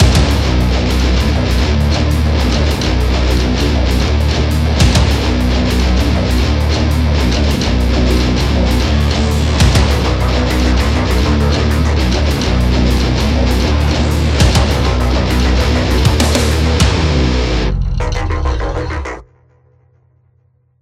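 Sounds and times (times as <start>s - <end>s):
song intro music: 0.0s - 19.4s.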